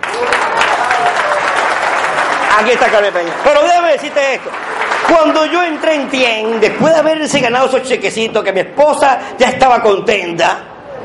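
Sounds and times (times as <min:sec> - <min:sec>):
audience applause: 0:00.0 - 0:07.2
speech: 0:02.6 - 0:11.0.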